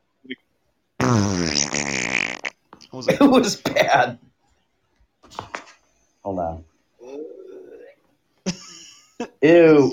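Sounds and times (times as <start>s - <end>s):
fart: 1.0s - 2.6s
speech: 1.1s - 1.6s, 3.0s - 4.3s, 6.2s - 6.7s, 9.2s - 9.9s.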